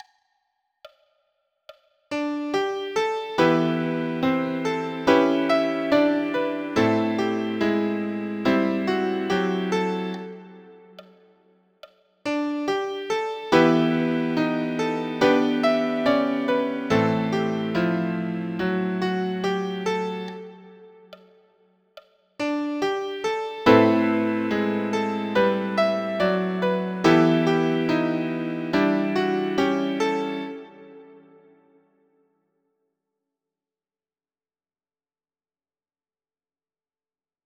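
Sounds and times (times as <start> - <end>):
minor key music with line cliches: 2.1 - 11.0, 12.3 - 21.2, 22.4 - 31.6.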